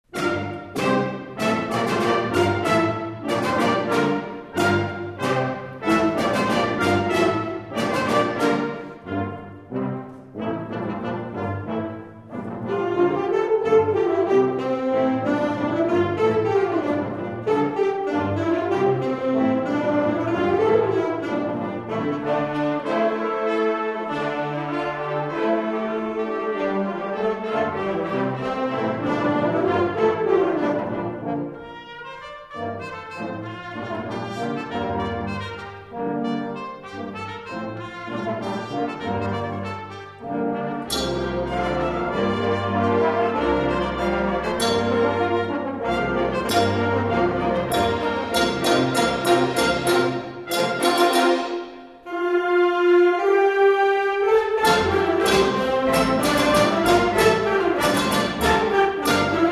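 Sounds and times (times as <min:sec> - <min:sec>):
symphonic band playing: 0:00.0 - 0:59.4.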